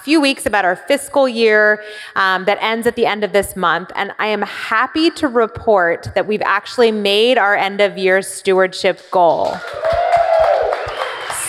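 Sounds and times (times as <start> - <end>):
speech: 0.0 - 10.1
audience applauding loudly: 9.5 - 11.4
sustained whistle-like whoop: 9.6 - 11.4.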